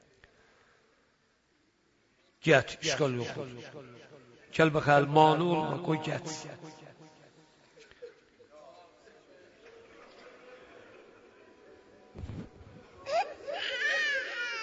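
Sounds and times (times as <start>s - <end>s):
adult talking: 2.4s - 3.9s, 4.5s - 6.8s
speech: 2.4s - 6.9s
young child crying: 13.0s - 14.6s.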